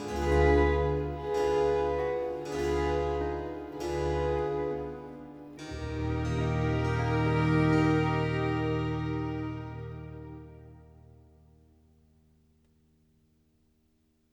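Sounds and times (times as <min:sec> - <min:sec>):
baroque ensemble playing a concerto largo in C major: 0:00.0 - 0:11.1.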